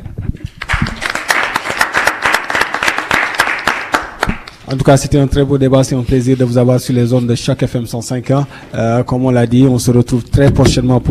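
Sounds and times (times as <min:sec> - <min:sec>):
audience applause: 0:00.6 - 0:04.5
speech: 0:04.7 - 0:11.1.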